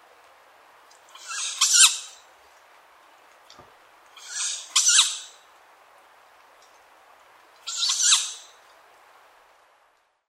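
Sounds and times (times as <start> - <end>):
tawny owl: 1.1 - 2.2, 4.2 - 5.4, 7.6 - 8.6.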